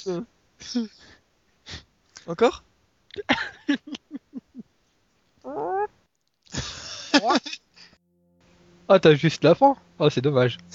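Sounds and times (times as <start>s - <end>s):
speech: 0.0s - 4.1s, 5.5s - 6.0s, 6.6s - 7.6s, 8.9s - 10.7s
man imitating a chicken: 5.5s - 5.9s.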